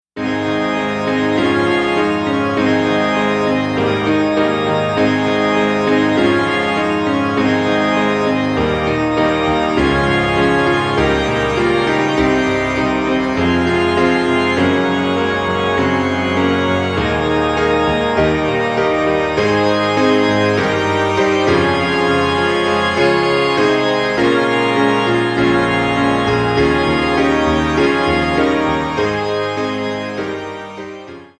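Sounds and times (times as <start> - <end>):
piano: 0.0 - 31.3
organ: 0.2 - 31.3.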